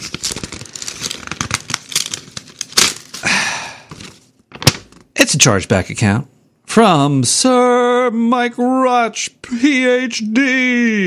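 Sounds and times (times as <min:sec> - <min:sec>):
paper envelope torn open with a finger: 0:00.0 - 0:03.3
speech: 0:05.3 - 0:11.0.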